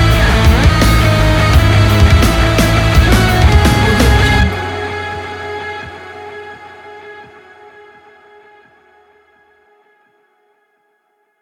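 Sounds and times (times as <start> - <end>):
aggressive rock action music: 0.0 - 9.0.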